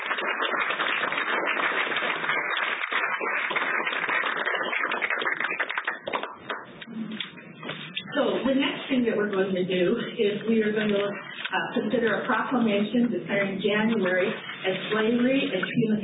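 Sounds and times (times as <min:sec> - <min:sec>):
audience clapping: 0:00.0 - 0:06.9
speech: 0:08.5 - 0:16.0.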